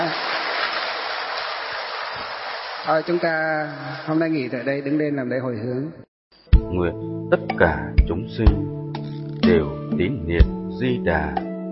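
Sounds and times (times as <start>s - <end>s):
audience applause: 0.0s - 4.2s
speech: 2.8s - 6.1s, 6.7s - 8.8s, 9.5s - 11.5s.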